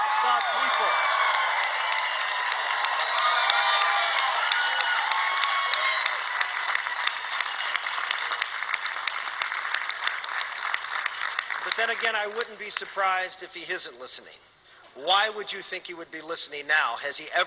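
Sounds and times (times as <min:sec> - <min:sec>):
crowd cheering at a rally: 0:00.0 - 0:12.4
speech: 0:11.8 - 0:17.4.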